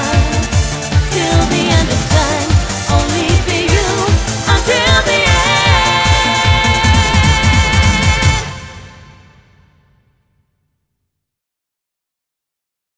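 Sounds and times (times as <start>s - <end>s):
hyper eurobeat music: 0.0s - 9.6s.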